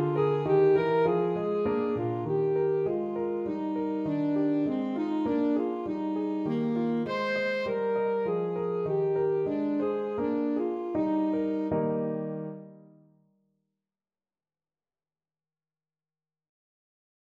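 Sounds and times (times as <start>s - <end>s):
alto saxophone: 0.0s - 12.7s.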